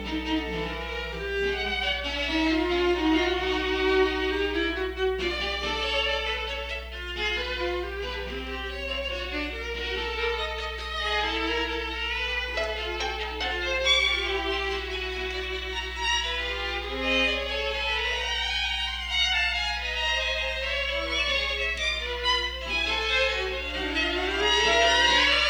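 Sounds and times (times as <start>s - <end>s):
piano and string quartet playing a quintet: 0.0s - 25.4s.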